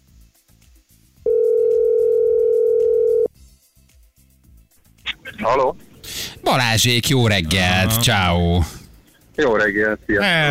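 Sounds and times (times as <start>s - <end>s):
telephone dial tone: 1.3s - 3.3s
speech: 5.4s - 8.8s, 9.4s - 10.4s.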